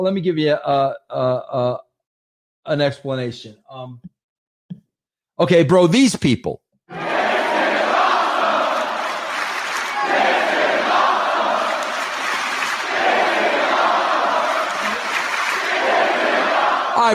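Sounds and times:
speech: 0:00.0 - 0:01.9, 0:02.6 - 0:04.2, 0:05.4 - 0:07.0
crowd chanting: 0:06.9 - 0:17.1.

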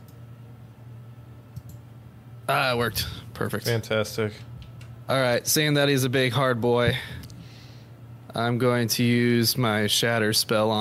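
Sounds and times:
low steady hum: 0:00.0 - 0:10.7
computer mouse double right-click: 0:01.6 - 0:01.8
speech: 0:02.5 - 0:04.5, 0:05.1 - 0:07.3, 0:08.4 - 0:10.7.

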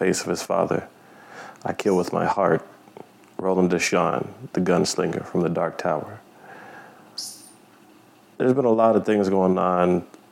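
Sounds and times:
speech: 0:00.0 - 0:02.8, 0:03.4 - 0:06.3, 0:08.4 - 0:10.2
steady background hiss: 0:00.0 - 0:10.2
bird chirp: 0:07.2 - 0:07.7.

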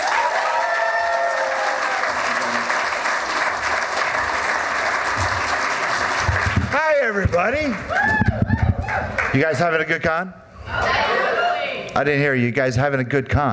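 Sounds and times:
fan convention audience cheers: 0:00.0 - 0:06.4, 0:07.0 - 0:09.3
fan convention audience clapping for a panel moderator: 0:00.0 - 0:09.7
speech: 0:07.1 - 0:11.2, 0:11.9 - 0:13.5.

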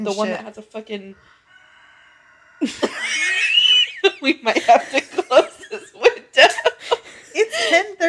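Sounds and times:
speech: 0:00.0 - 0:01.4, 0:02.6 - 0:06.5, 0:07.4 - 0:08.0
rooster crowing: 0:01.2 - 0:03.7
laughter: 0:02.6 - 0:08.0.

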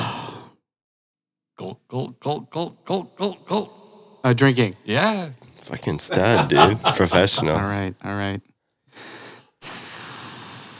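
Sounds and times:
speech: 0:01.6 - 0:09.2
laughter: 0:05.6 - 0:08.0
person imitating snake hissing: 0:09.6 - 0:10.7.

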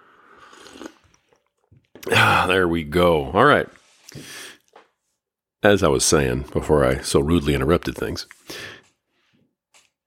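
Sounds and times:
person sipping coffee: 0:00.0 - 0:02.2
swallow: 0:00.1 - 0:02.2
speech: 0:02.1 - 0:04.4, 0:05.6 - 0:08.8.

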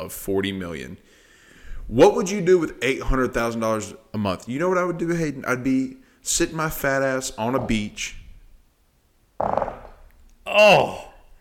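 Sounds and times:
speech: 0:00.0 - 0:01.2, 0:01.9 - 0:08.2, 0:10.5 - 0:11.1
fart: 0:09.4 - 0:10.0.

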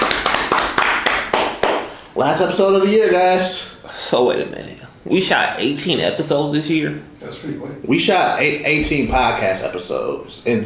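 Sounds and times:
round of applause: 0:00.0 - 0:01.9
speech: 0:02.2 - 0:10.6.

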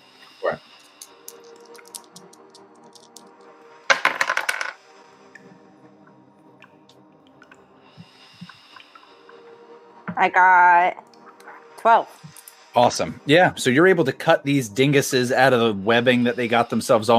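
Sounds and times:
two six-sided dice rattling on a surface: 0:00.8 - 0:03.3, 0:03.9 - 0:04.8
speech: 0:10.2 - 0:11.1, 0:11.8 - 0:12.2, 0:12.8 - 0:17.1.

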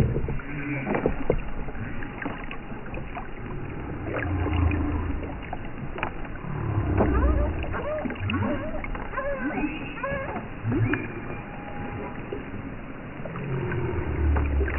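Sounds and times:
constant low underwater rumble: 0:00.0 - 0:14.7
whale song moans: 0:03.7 - 0:05.6, 0:06.4 - 0:12.3, 0:13.2 - 0:14.7.

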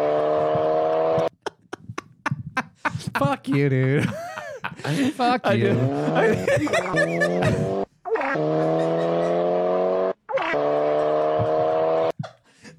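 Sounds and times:
Volkswagen Golf engine revving while driving away: 0:00.0 - 0:01.3, 0:05.7 - 0:12.1
laughter: 0:01.3 - 0:07.8, 0:08.5 - 0:09.4, 0:10.9 - 0:12.7
speech: 0:03.2 - 0:07.8.

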